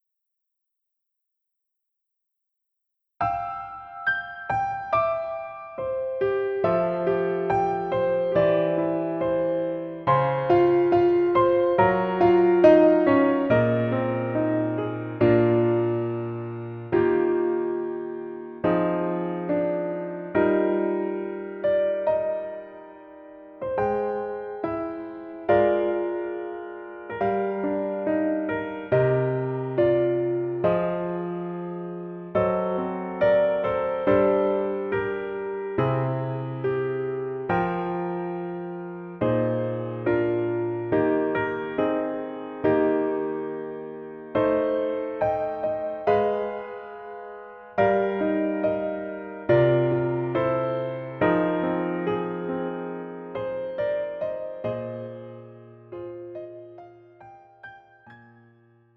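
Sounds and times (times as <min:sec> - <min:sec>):
piano version of a song in a female key: 0:03.2 - 0:58.9.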